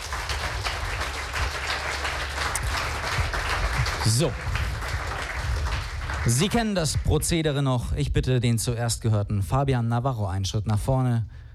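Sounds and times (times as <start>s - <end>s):
audience applause: 0.0s - 7.3s
speech: 4.0s - 4.5s, 6.2s - 11.4s.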